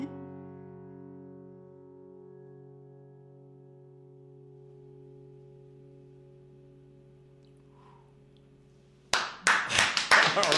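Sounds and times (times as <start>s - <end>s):
small studio audience clapping: 9.1s - 10.5s.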